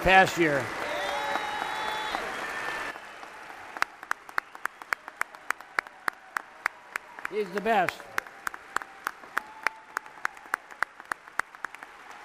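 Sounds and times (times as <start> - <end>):
speech: 0.0 - 0.8, 7.4 - 8.1
audience round of applause: 0.0 - 12.2.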